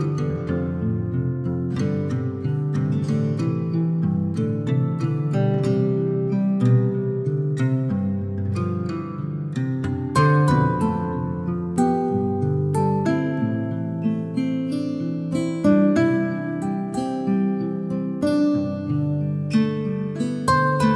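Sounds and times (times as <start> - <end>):
relaxing calm acoustic guitar music: 0.0 - 20.9.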